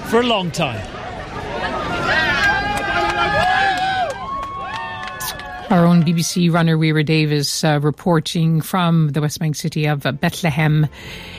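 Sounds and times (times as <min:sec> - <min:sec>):
crowd at a marathon finish line in Bethlehem's Manger Square: 0:00.0 - 0:10.9
speech: 0:00.1 - 0:01.0, 0:05.7 - 0:11.3.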